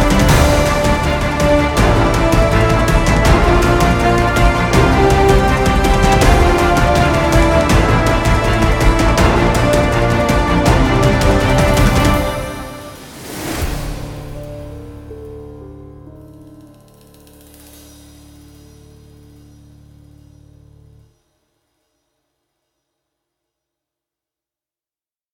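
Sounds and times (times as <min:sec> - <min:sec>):
epic action music: 0:00.0 - 0:18.7.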